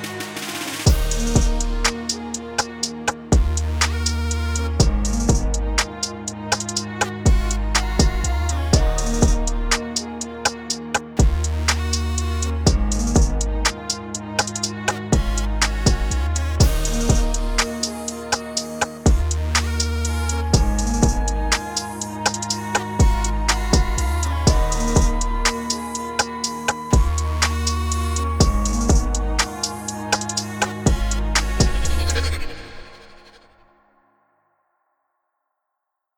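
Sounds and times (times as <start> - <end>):
beat at 61 bpm: 0.0 - 32.3.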